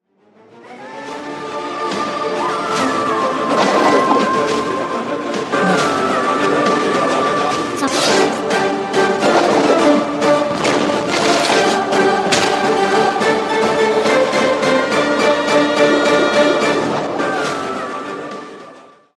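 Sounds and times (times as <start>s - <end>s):
teaser background music: 0.0s - 19.1s.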